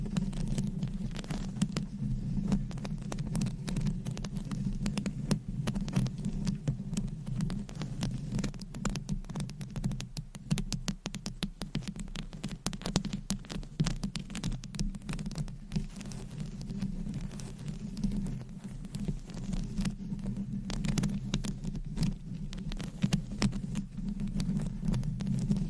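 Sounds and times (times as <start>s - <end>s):
nails scratching and tapping objects: 0.0s - 25.6s.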